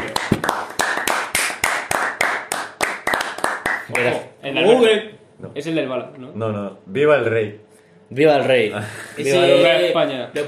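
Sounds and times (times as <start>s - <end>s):
applause: 0.0s - 4.2s
speech: 3.9s - 10.4s.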